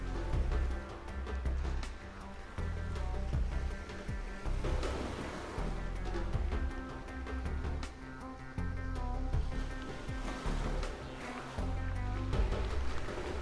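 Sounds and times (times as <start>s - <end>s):
ambient ocean: 0.0s - 13.4s.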